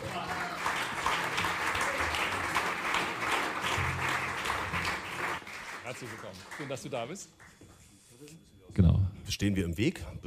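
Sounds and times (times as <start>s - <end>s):
audience applause: 0.0s - 7.1s
speech: 6.0s - 7.5s, 8.2s - 10.2s.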